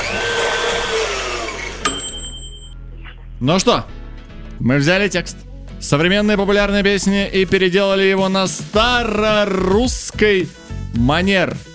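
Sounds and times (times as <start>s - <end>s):
smoothie blender running: 0.0s - 1.9s
speech: 3.4s - 4.0s, 4.6s - 11.7s.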